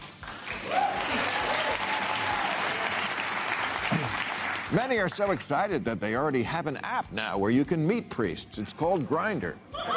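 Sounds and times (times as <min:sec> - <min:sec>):
audience applause: 0:00.0 - 0:05.1
speech: 0:04.7 - 0:09.9.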